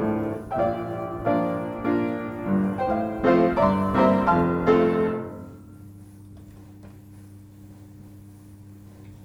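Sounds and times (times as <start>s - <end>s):
1920 player piano from Germany: 0.0s - 5.8s.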